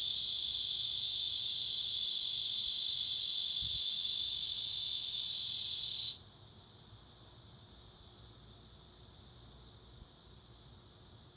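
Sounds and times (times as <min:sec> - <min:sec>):
cicada buzzing: 0:00.0 - 0:06.2.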